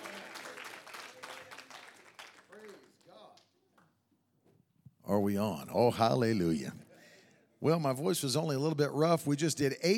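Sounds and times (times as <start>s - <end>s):
audience clapping hands: 0.0s - 3.9s
speech: 5.1s - 6.8s, 7.6s - 9.9s.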